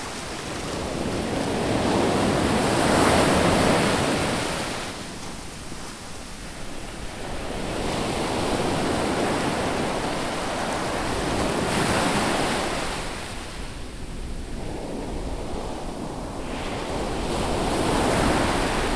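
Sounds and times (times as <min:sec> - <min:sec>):
whirling sea waves at the shore: 0:00.0 - 0:18.9.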